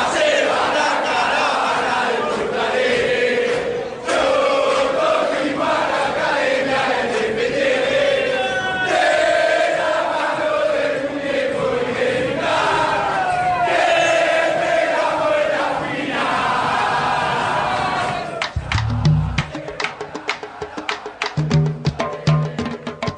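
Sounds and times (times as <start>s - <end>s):
football fans chanting in stadium: 0.0s - 23.0s
low thump: 18.6s - 19.5s.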